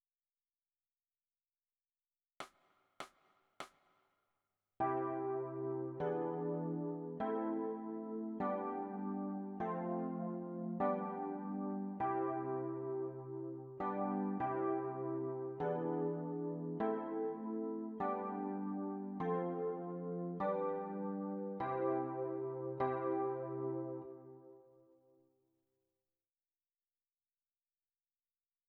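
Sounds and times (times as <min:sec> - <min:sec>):
electric piano: 0:04.8 - 0:24.9.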